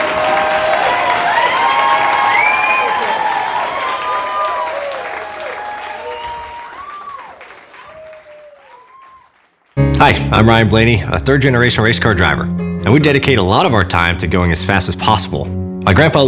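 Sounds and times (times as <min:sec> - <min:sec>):
audience applause and cheering: 0:00.0 - 0:10.0
speech: 0:10.1 - 0:16.2.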